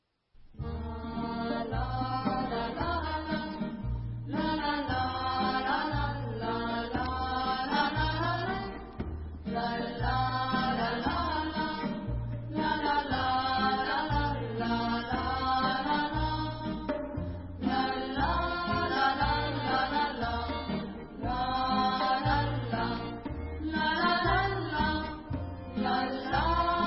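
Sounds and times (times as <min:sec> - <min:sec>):
instrumental music: 0:00.4 - 0:26.8.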